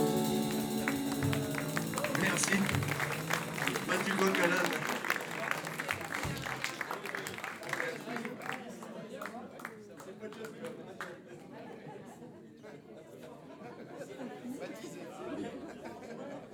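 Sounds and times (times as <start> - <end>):
audience applause: 0.0 - 8.9.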